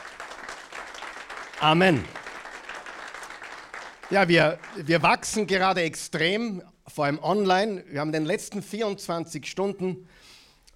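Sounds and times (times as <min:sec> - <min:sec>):
audience applause: 0:00.0 - 0:05.6
speech: 0:01.6 - 0:02.2, 0:04.1 - 0:10.4.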